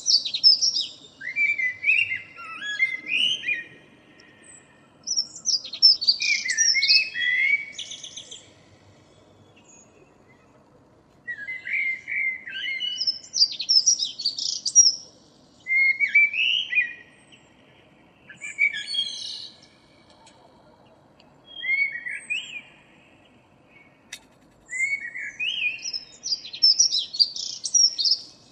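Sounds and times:
common blackbird singing: 0.0 - 8.7, 11.2 - 17.6, 18.2 - 24.1, 24.7 - 28.5
steady low noise: 0.0 - 28.5.

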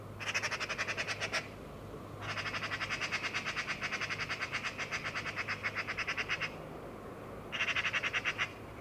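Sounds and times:
Eurasian magpie Pica pica giving harsh rattling chatters: 0.2 - 1.5, 2.2 - 6.6, 7.5 - 8.6.

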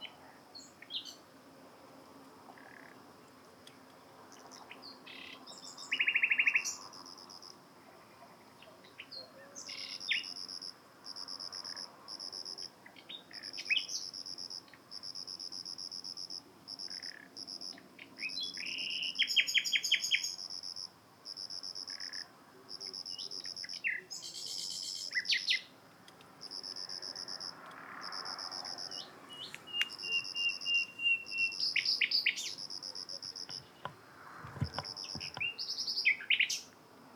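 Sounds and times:
common nightingale singing: 4.3 - 6.9, 8.6 - 10.5, 12.9 - 14.3, 17.7 - 20.5, 22.8 - 25.7, 28.7 - 36.8.

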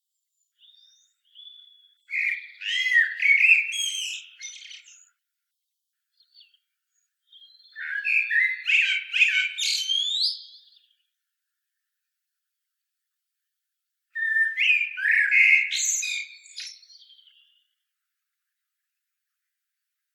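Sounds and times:
common blackbird singing: 0.6 - 5.1, 7.2 - 11.0, 14.2 - 17.8.

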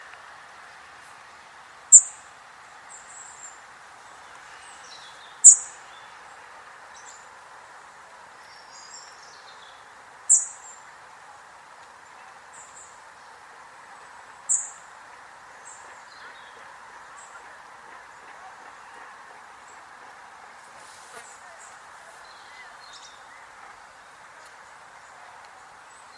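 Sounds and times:
low steady hiss: 0.0 - 26.1
European robin calls: 1.9 - 2.3, 4.2 - 6.2, 8.4 - 10.9, 12.0 - 26.1.

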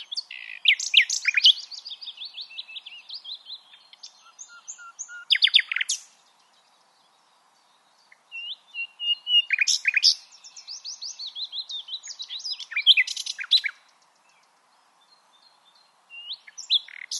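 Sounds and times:
Common nightingale song: 0.0 - 7.2, 8.0 - 17.1.

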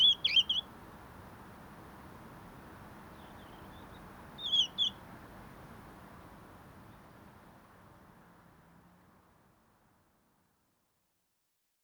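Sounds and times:
European robin whistling: 0.0 - 0.6.

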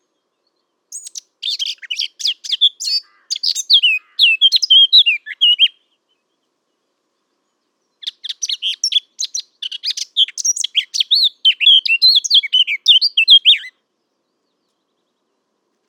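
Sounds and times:
Eurasian blackcap song: 0.9 - 5.8, 8.0 - 13.7.

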